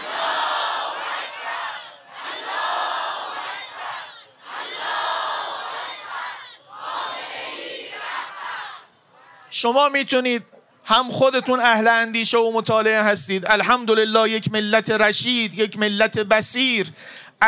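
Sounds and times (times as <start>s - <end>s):
large crowd chanting in unison: 0.0s - 9.3s
speech: 9.6s - 17.4s.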